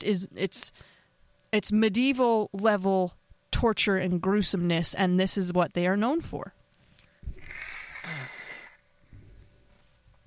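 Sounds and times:
speech: 0.0s - 0.9s, 1.5s - 6.6s
person blowing nose: 7.3s - 8.8s
person snuffling: 7.3s - 8.8s.

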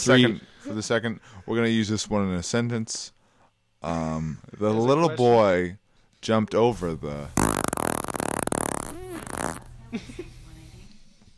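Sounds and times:
speech: 0.0s - 3.2s, 3.8s - 7.4s, 9.9s - 10.2s
fart: 7.4s - 9.8s.

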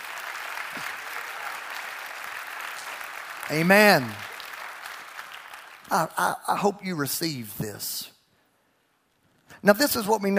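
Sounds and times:
audience clapping hands: 0.0s - 6.8s
speech: 3.5s - 4.2s, 5.9s - 8.1s, 9.6s - 10.3s.

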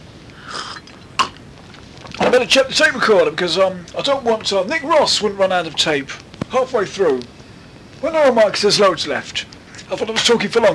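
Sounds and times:
person sipping tea: 0.3s - 2.2s
speech: 2.3s - 7.4s, 8.0s - 10.7s.

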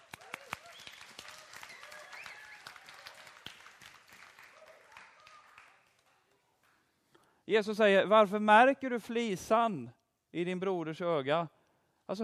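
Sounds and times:
audience applause: 0.0s - 6.3s
speech: 7.5s - 12.2s.

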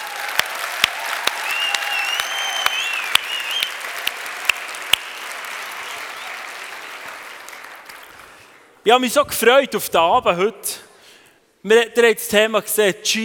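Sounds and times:
applause: 0.0s - 8.8s
speech: 8.9s - 10.8s, 11.6s - 13.2s.

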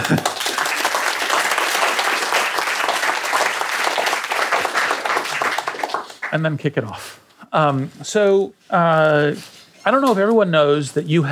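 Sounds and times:
audience applause welcoming Eric Schmidt on stage: 0.0s - 6.4s
speech: 0.1s - 0.4s, 6.3s - 11.3s.

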